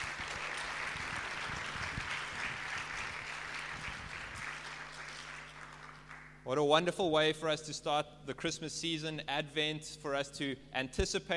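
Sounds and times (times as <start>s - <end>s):
audience applause: 0.0s - 6.3s
speech: 6.5s - 11.3s.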